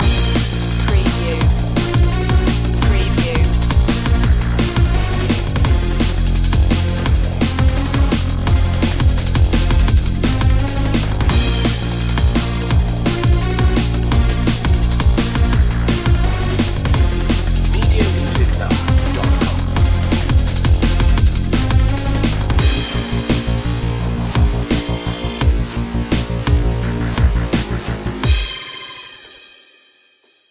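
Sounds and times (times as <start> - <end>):
beats: 0.0 - 29.4.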